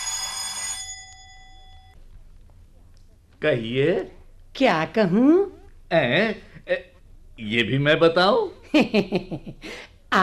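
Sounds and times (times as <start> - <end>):
electric doorbell ringing: 0.0 - 2.0
faint high hum: 1.0 - 10.2
speech: 3.4 - 10.2.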